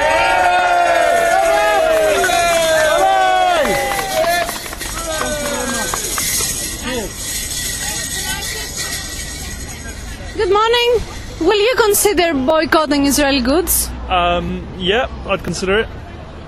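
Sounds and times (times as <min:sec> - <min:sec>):
crowd cheering and whooping: 0:00.0 - 0:07.1
scattered shouts and babble: 0:00.0 - 0:13.7
speech: 0:12.0 - 0:16.0.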